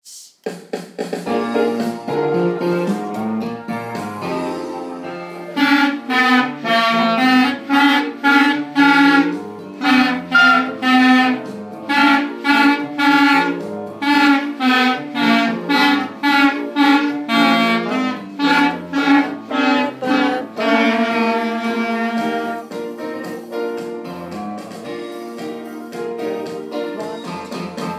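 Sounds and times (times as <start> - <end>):
clarinet: 1.6 - 23.8.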